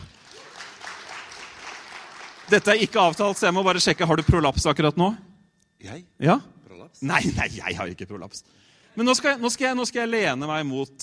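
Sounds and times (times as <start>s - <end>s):
audience applause: 0.0s - 4.5s
speech: 2.5s - 11.0s.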